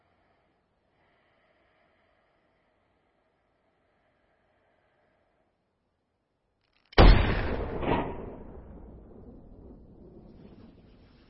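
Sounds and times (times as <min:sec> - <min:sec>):
sniper rifle shot hitting a can of beans in a movie scene: 0:06.9 - 0:10.8.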